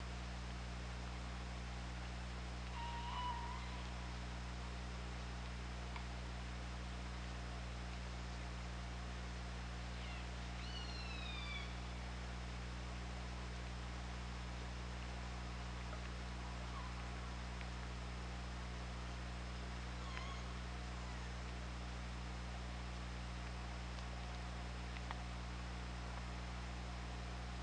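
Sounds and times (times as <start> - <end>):
hydrophone underwater hum and hiss: 0.0 - 27.6
killer whale call: 2.8 - 3.9.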